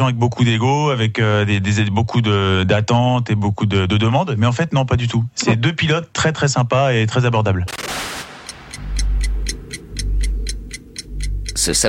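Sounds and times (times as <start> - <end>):
speech: 0.0 - 8.2, 11.6 - 11.8
large clock ticking at the Le Mans racing circuit: 7.7 - 11.8
low rumbling drone: 8.4 - 11.8.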